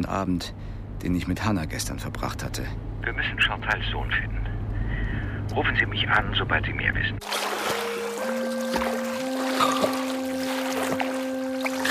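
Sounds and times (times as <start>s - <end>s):
speech: 0.0s - 4.4s, 5.5s - 7.8s
sea water splashing at the beach at Cap Couronne: 7.2s - 11.9s.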